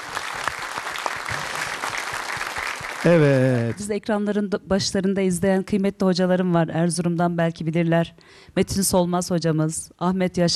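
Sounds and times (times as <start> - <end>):
audience applause in tribute: 0.0 - 3.8
speech: 3.0 - 10.5.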